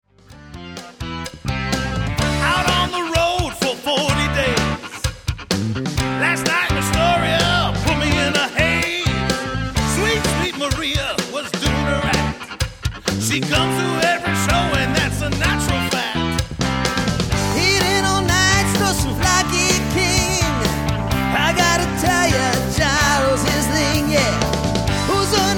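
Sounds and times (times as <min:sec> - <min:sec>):
travelling Greek band playing: 0:00.1 - 0:25.5.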